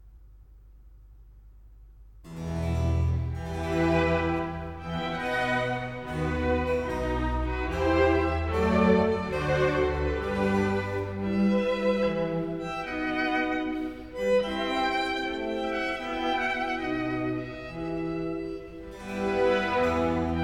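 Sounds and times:
baroque concerto grosso larghetto in E major: 2.3 - 20.4.

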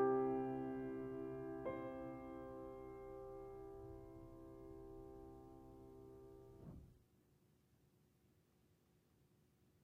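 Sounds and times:
keyboard prelude in C major: 0.0 - 5.6.

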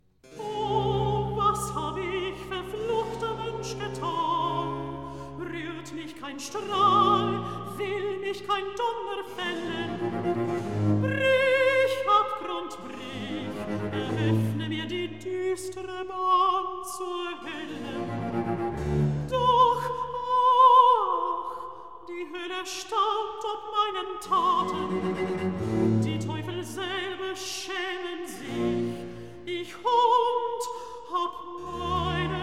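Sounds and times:
recitative singing: 0.2 - 32.4.

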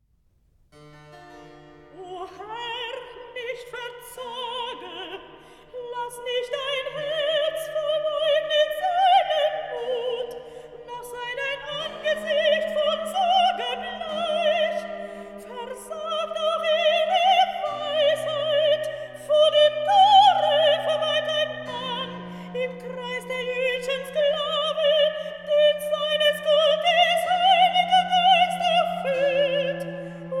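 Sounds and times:
recitative singing: 2.0 - 30.3.

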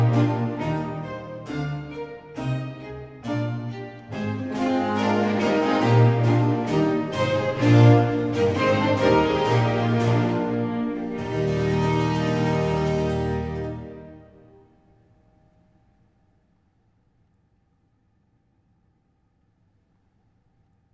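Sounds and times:
concerto allegro in F major: 0.0 - 14.6.

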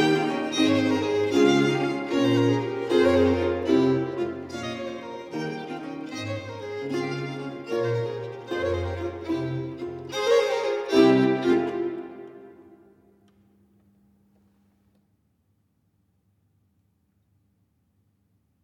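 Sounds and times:
allegro movement of sonata in G minor: 0.0 - 12.8.

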